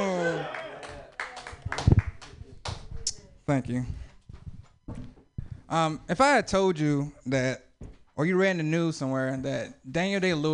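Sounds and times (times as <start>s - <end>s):
audience clapping: 0.2s - 3.2s
speech: 3.5s - 4.0s, 5.7s - 7.6s, 8.2s - 10.5s.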